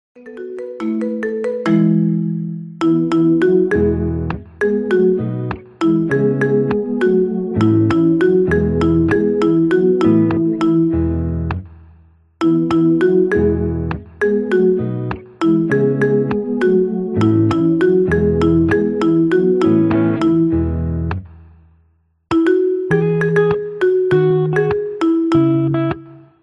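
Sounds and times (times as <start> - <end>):
marimba ringtone remix: 0.2 - 11.4, 12.4 - 20.8, 22.3 - 26.2.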